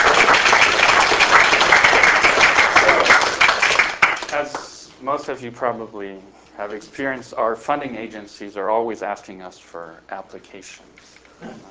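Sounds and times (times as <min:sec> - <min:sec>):
audience applause: 0:00.0 - 0:04.6
speech: 0:05.0 - 0:11.6.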